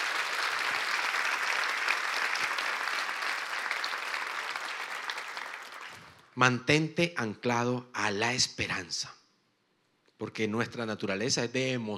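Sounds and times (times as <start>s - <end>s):
audience applause: 0.0s - 6.2s
speech: 6.4s - 9.2s, 10.2s - 11.9s.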